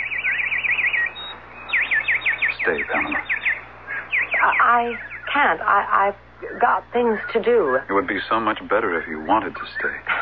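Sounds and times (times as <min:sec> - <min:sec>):
very rare nightingale singing: 0:00.0 - 0:05.3
speech: 0:02.6 - 0:03.4, 0:04.4 - 0:10.2.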